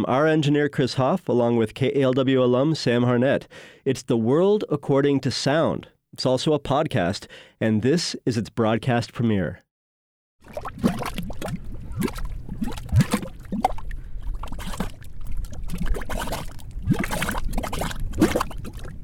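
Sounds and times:
speech: 0.0s - 9.6s, 10.5s - 10.9s
bubbling mud pots spitting gray mud: 10.4s - 19.0s.

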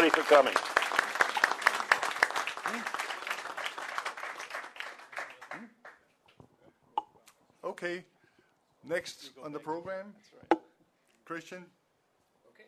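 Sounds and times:
speech: 0.0s - 0.8s, 2.7s - 3.0s, 7.8s - 8.1s, 8.8s - 10.6s, 11.3s - 11.8s
audience applause: 0.0s - 6.0s.

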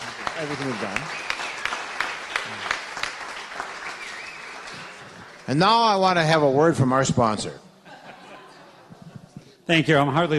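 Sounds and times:
audience applause: 0.0s - 6.0s
speech: 0.4s - 1.3s, 5.5s - 7.6s, 9.7s - 10.3s
laughter: 7.8s - 9.4s.

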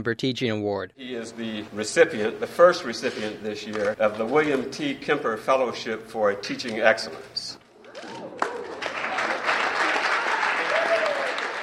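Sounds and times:
speech: 0.0s - 7.6s
students applauding in lecture hall: 7.9s - 11.6s.

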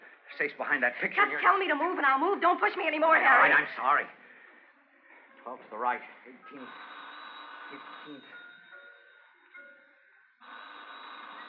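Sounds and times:
speech: 0.4s - 4.2s, 5.4s - 6.9s, 7.7s - 8.4s
faint voices murmuring: 4.1s - 9.6s
telephone ringing with a harsh metallic jangle: 6.4s - 11.4s.

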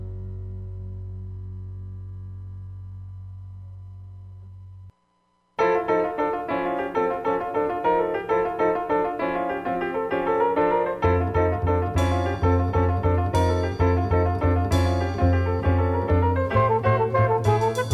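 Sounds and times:
jazz music: 5.6s - 17.9s.

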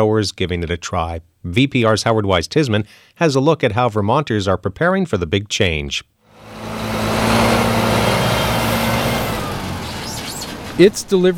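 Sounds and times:
speech: 0.0s - 6.1s, 10.8s - 11.3s
18-wheeler truck pulling into parking lot off South Main Street: 6.3s - 11.3s.

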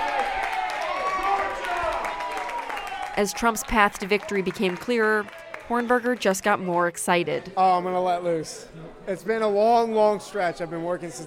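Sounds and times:
people cheering at election party: 0.0s - 6.9s
people clapping at election party: 0.0s - 6.9s
speech: 3.2s - 11.2s.

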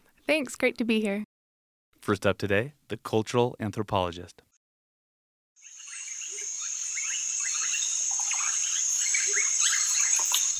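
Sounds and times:
speech: 0.3s - 1.3s, 2.1s - 4.5s
Amazon rainforest ambience in Ecuador: 5.6s - 10.5s.

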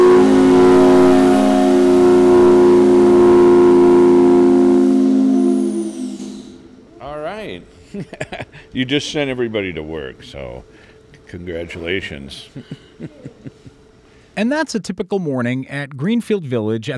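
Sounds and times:
factory whistle: 0.0s - 7.0s
laughter: 7.8s - 8.9s, 12.3s - 13.8s
speech: 8.8s - 13.6s, 14.4s - 16.9s.

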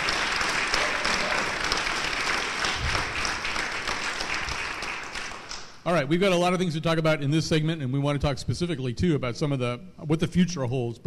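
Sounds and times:
audience applause in the Great Dinosaur Hall of the Peabody Museum: 0.0s - 5.7s
speech: 5.8s - 11.0s.

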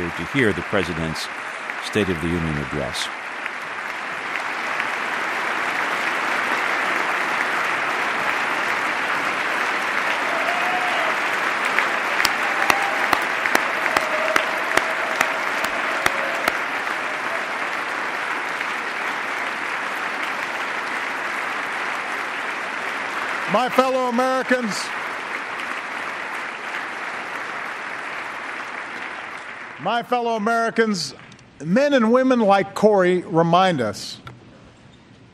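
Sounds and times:
prolonged applause at the State of the Union address: 0.0s - 31.2s
speech: 0.1s - 3.2s, 23.6s - 25.1s, 29.8s - 34.2s.

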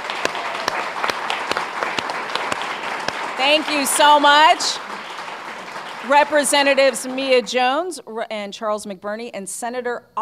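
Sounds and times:
round of applause for the Duval delegation: 0.0s - 7.6s
speech: 3.4s - 4.8s, 6.0s - 10.2s.

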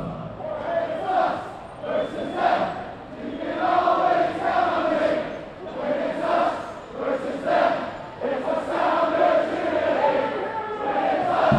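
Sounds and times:
football fans singing team songs: 0.0s - 11.5s.

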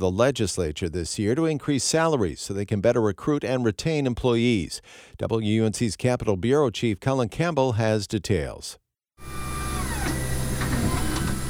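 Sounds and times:
speech: 0.0s - 9.4s
lab machines processing slides for pathologists at an animal disease testing lab in Raleigh: 9.2s - 11.4s.

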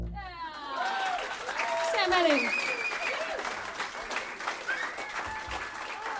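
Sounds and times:
audience clapping: 0.2s - 6.1s
people cheering: 0.2s - 6.1s.

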